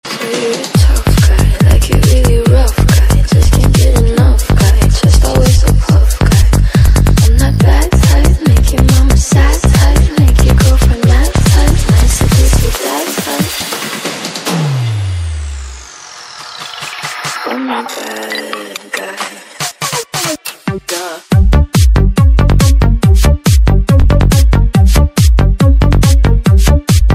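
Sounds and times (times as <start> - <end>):
trance remix: 0.0 - 27.1.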